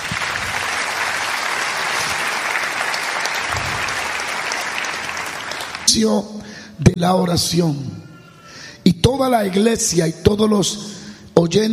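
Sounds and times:
audience applauding: 0:00.0 - 0:05.9
speech: 0:05.9 - 0:08.0, 0:08.8 - 0:11.7.

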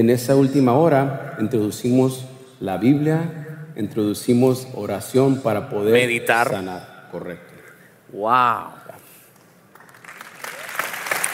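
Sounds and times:
speech: 0:00.0 - 0:07.5, 0:08.1 - 0:08.8
audience applause: 0:09.8 - 0:11.3.

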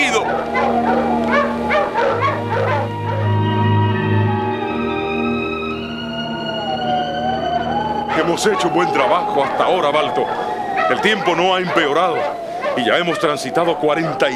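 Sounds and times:
sled dog barking: 0:00.0 - 0:03.3, 0:08.1 - 0:14.3
sled dog whining howl: 0:00.0 - 0:14.3
speech: 0:08.4 - 0:14.3.

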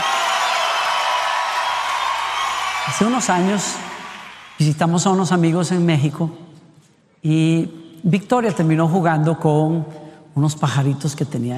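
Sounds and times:
loud sustained crowd applause: 0:00.0 - 0:04.8
speech: 0:02.9 - 0:03.9, 0:04.6 - 0:06.6, 0:07.2 - 0:11.5.

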